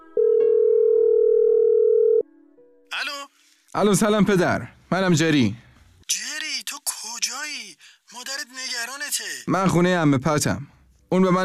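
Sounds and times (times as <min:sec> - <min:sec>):
telephone ringback tone as a call is placed: 0:00.0 - 0:02.3
speech: 0:03.7 - 0:06.2, 0:09.5 - 0:11.4.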